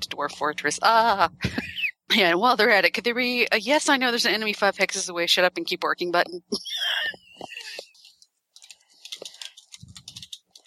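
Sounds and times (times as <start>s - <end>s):
speech: 0.2s - 7.8s
typing on a keyboard: 7.8s - 10.6s.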